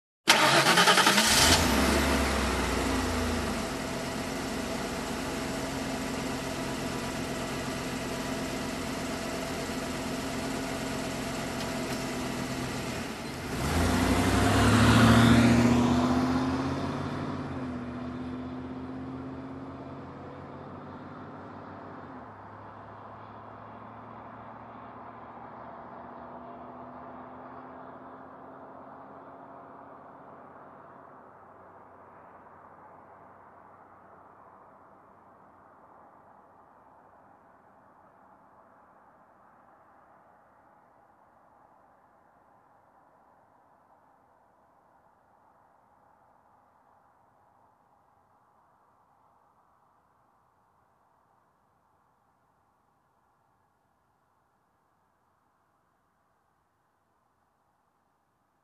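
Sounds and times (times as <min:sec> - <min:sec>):
car engine ignition: 0:00.3 - 0:30.2.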